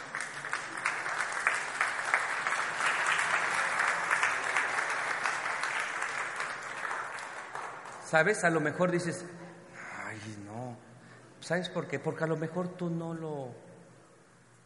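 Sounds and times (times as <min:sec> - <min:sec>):
audience applause: 0:00.0 - 0:08.0
speech: 0:08.1 - 0:09.4, 0:11.5 - 0:13.7.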